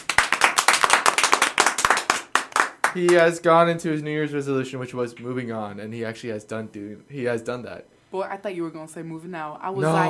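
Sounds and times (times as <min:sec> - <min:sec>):
people clapping: 0:00.0 - 0:03.4
speech: 0:02.9 - 0:10.0.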